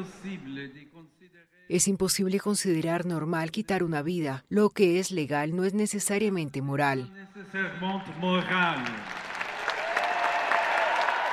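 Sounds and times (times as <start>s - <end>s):
speech: 0.0s - 9.3s
applause: 7.8s - 11.3s
crowd cheering: 7.8s - 11.3s.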